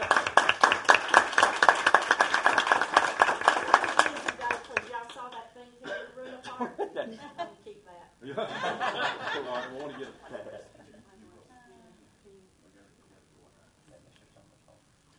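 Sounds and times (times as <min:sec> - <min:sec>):
applause: 0:00.0 - 0:05.3
laughter: 0:08.3 - 0:11.0.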